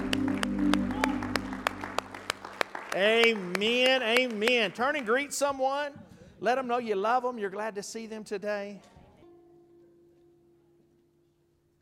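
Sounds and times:
audience applauding: 0.0 - 5.4
speech: 3.0 - 8.9.

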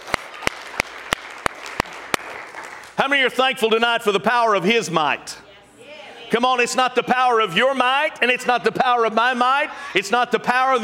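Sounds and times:
audience clapping in unison: 0.0 - 3.1
speech: 3.0 - 5.4, 6.3 - 10.8.

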